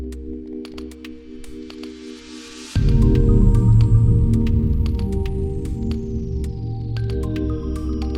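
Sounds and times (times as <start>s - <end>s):
tension music: 2.8s - 8.1s.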